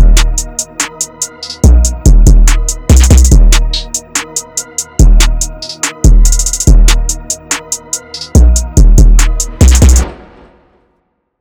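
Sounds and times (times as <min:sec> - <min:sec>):
hard analog trap beat: 0:00.0 - 0:10.1.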